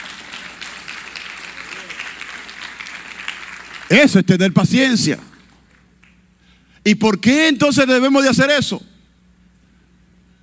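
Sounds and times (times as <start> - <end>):
audience applauding: 0.0 - 4.2
speech: 3.9 - 5.3, 6.8 - 8.9.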